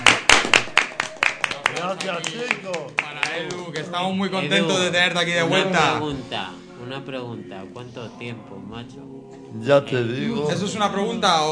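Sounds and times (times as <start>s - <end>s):
small group clapping for a returning guest: 0.0s - 4.2s
speech: 1.8s - 11.5s.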